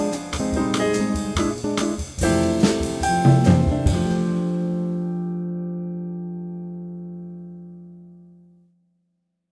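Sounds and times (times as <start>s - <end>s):
jazz bossa nova bass play-along: 0.0s - 8.4s.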